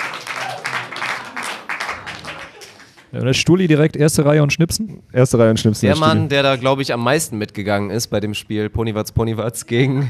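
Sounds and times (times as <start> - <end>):
audience applause: 0.0 - 3.2
speech: 3.1 - 10.0.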